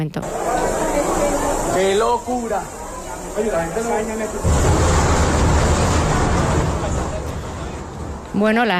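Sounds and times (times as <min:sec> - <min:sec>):
speech: 0:00.0 - 0:05.0, 0:08.4 - 0:08.7
crowd babble: 0:00.0 - 0:08.7
sustained roar: 0:00.2 - 0:08.6
voices murmuring: 0:00.2 - 0:08.7
explosion in metro carriage: 0:03.8 - 0:08.7.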